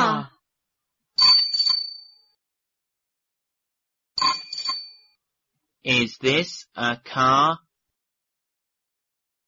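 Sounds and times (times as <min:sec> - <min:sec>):
bicycle bell ringing: 0:01.2 - 0:02.4, 0:04.2 - 0:05.2
speech: 0:05.8 - 0:07.6.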